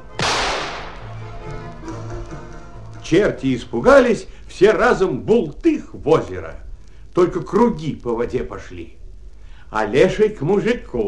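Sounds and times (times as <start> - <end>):
faint hum: 0.0 - 11.0
shotgun blast: 0.1 - 1.3
speech: 3.1 - 6.6, 7.2 - 9.0, 9.7 - 11.0.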